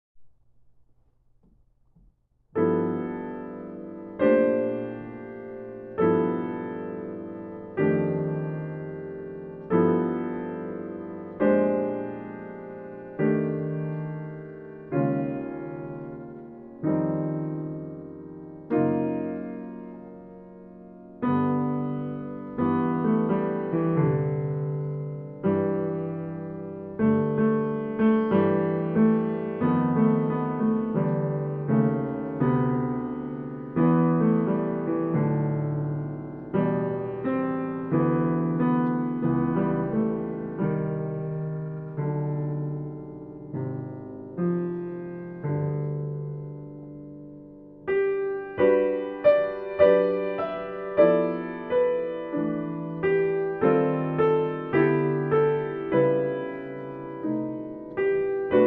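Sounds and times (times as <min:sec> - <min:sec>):
solo piano piece: 0:00.0 - 0:58.6.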